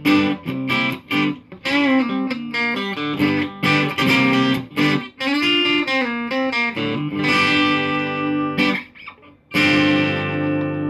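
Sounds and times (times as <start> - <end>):
electric guitar on bridge pickup through an amp with Rickenbacker-like tone: 0.0 - 10.8.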